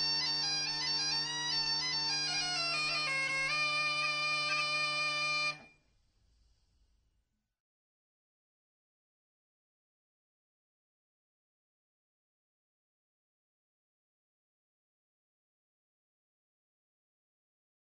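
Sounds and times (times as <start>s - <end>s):
cornemuse bagpipe: 0.0s - 5.8s.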